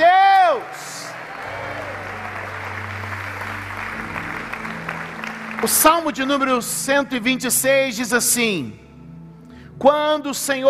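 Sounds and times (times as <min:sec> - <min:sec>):
audience applause: 0:00.4 - 0:06.6
low sustained musical tone: 0:01.4 - 0:10.5
speech: 0:05.6 - 0:08.8, 0:09.8 - 0:10.6.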